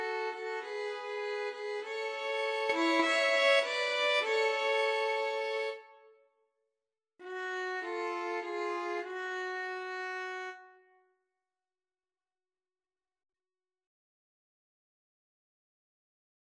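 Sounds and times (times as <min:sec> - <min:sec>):
violin trio: 0:00.0 - 0:05.9, 0:07.2 - 0:10.6.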